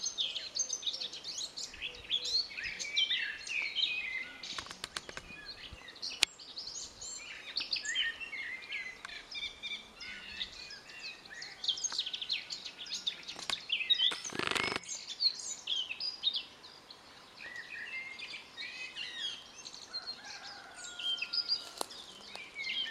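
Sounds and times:
Eurasian blackcap rapid warbling song: 0:00.0 - 0:16.5, 0:17.4 - 0:22.8
soft calls from other birds: 0:00.0 - 0:22.8
sharp clicks: 0:04.5 - 0:05.3.

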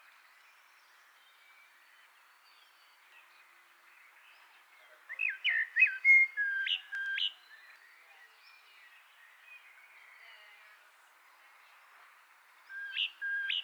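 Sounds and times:
common blackbird Turdus merula singing: 0:05.1 - 0:07.4, 0:12.8 - 0:13.6.

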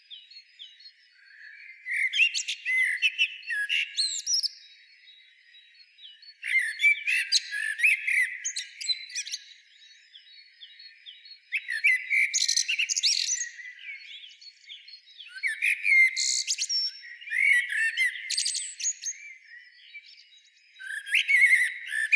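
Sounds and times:
common blackbird Turdus merula singing: 0:00.0 - 0:22.1.

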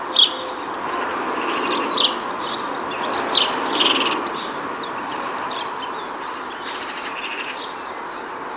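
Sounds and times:
house sparrow Passer domesticus chirping: 0:00.0 - 0:08.3.

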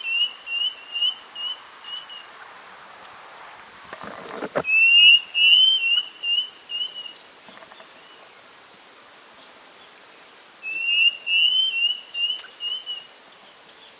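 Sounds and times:
high insect-like hiss: 0:00.0 - 0:13.9
bird whistling: 0:04.7 - 0:07.2, 0:10.7 - 0:13.1.

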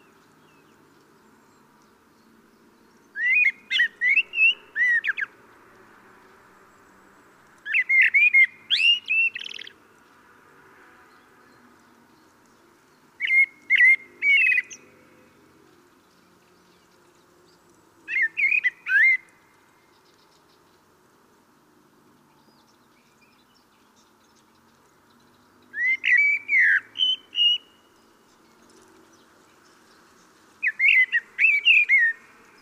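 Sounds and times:
common blackbird singing: 0:00.0 - 0:05.3, 0:07.6 - 0:09.8, 0:12.9 - 0:15.4, 0:16.0 - 0:20.8, 0:22.3 - 0:32.5.

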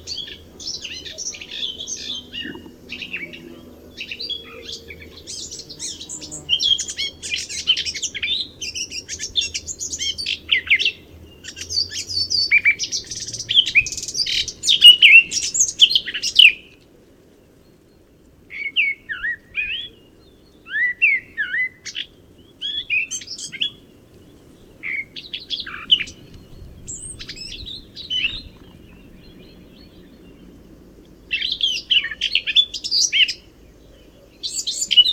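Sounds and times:
Eurasian blackcap song: 0:00.0 - 0:16.8, 0:18.6 - 0:35.1
faint hiss: 0:00.0 - 0:35.1.

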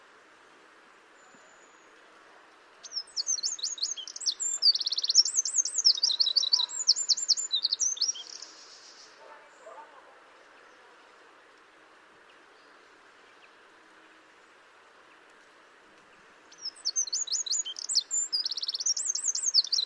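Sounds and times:
Eurasian wren trilling song: 0:02.8 - 0:09.2, 0:16.5 - 0:19.8.

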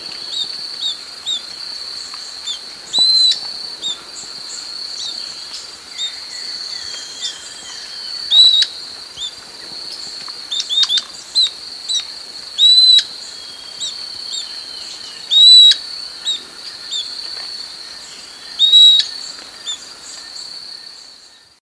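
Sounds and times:
insect-like hiss: 0:00.0 - 0:21.6
bird whistled calls: 0:02.5 - 0:04.0, 0:06.0 - 0:09.3, 0:12.6 - 0:17.1, 0:18.5 - 0:19.8.

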